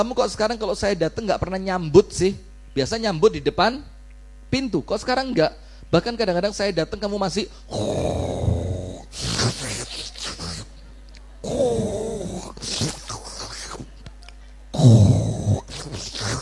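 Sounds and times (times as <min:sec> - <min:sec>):
speech: 0:00.0 - 0:03.9, 0:04.5 - 0:08.5, 0:14.8 - 0:15.2
voice imitating snoring and sucking breaths: 0:07.7 - 0:10.7, 0:11.4 - 0:14.0, 0:14.7 - 0:16.3.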